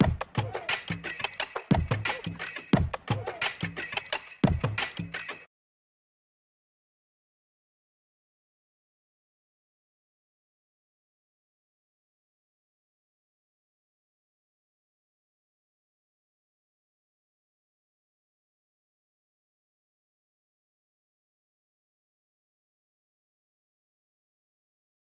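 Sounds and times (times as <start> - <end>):
88 BPM C sharp minor percussion loop: 0.0 - 5.5.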